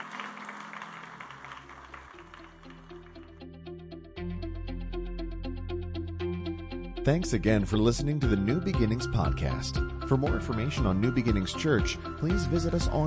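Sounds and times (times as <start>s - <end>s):
audience hand clapping: 0.0s - 3.5s
keyboard music with sustained bass notes: 1.7s - 13.0s
speech: 7.1s - 13.0s.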